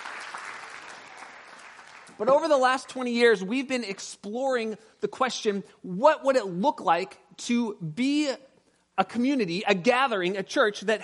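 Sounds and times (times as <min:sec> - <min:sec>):
audience applause: 0:00.0 - 0:02.4
speech: 0:02.2 - 0:11.0.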